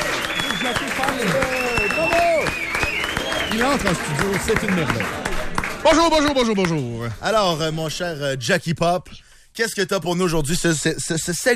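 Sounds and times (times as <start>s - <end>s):
whooping voices and high cheers: 0.0s - 4.9s
audience applauding a performer being introduced: 0.0s - 7.3s
speech: 3.6s - 11.5s.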